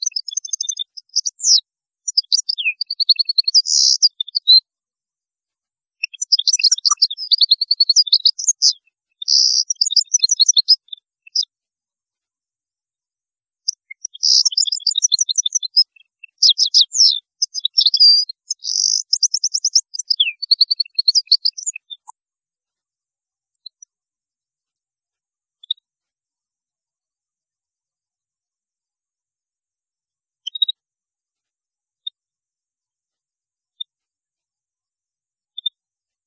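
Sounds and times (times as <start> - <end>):
European goldfinch twittering song: 0.0 - 4.6, 6.0 - 11.5, 13.7 - 22.2, 30.5 - 30.8.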